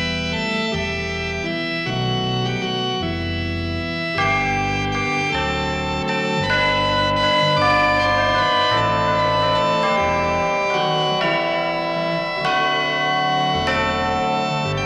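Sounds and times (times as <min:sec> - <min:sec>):
Christmas organ music: 0:00.0 - 0:14.8
Christmas chimes: 0:04.2 - 0:14.8.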